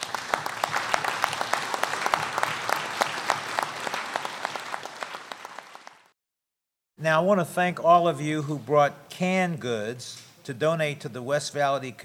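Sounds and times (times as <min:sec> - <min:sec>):
audience applause: 0:00.0 - 0:06.1
speech: 0:07.0 - 0:12.0.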